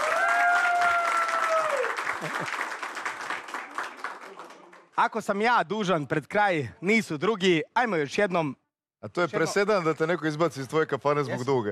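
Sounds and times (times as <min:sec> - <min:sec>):
television studio audience applause: 0:00.0 - 0:04.9
speech: 0:02.2 - 0:02.7, 0:05.0 - 0:11.7.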